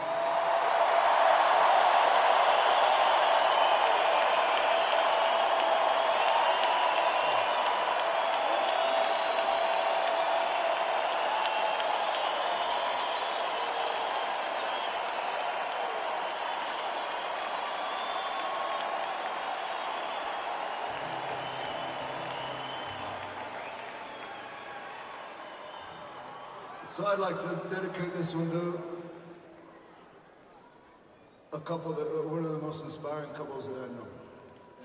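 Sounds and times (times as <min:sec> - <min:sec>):
large audience applauding: 0:00.0 - 0:27.4
speech: 0:27.0 - 0:28.9, 0:31.6 - 0:34.2.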